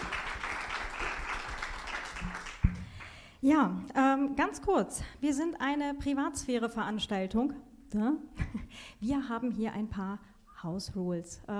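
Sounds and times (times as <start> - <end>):
audience applause in a hall: 0.0 - 3.2
speech: 3.4 - 11.5.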